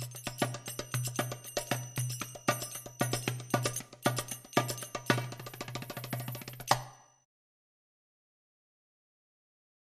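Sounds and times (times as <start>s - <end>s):
Arabic music loop: 0.0s - 7.1s.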